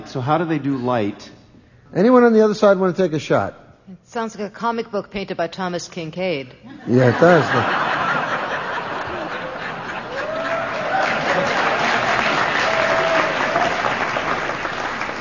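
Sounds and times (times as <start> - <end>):
speech: 0.1 - 7.9
laughter: 6.7 - 12.9
smattering of audience applause: 8.5 - 15.2.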